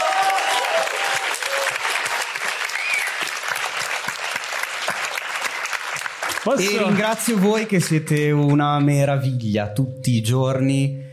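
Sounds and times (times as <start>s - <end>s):
audience applause: 0.0s - 7.9s
speech: 6.4s - 11.0s.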